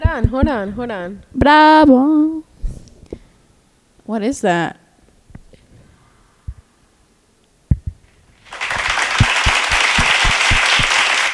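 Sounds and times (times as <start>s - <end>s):
speech: 0.0s - 2.4s, 4.1s - 4.8s
people clapping after a movie: 8.4s - 11.3s.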